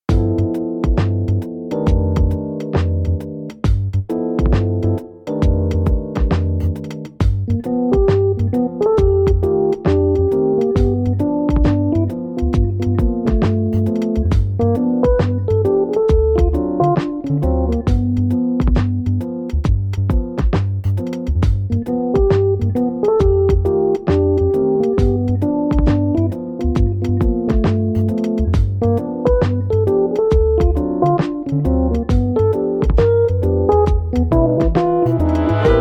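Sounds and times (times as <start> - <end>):
blues music: 0.0 - 35.7.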